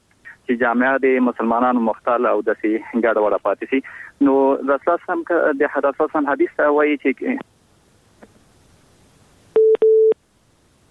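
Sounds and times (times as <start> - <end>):
speech: 0.5 - 7.5
electronic tone bursts on a connected phone line: 9.6 - 10.2.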